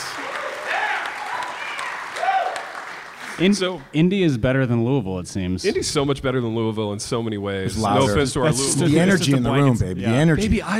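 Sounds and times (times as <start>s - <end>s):
live audience applause: 0.0s - 3.8s
speech: 3.4s - 10.7s.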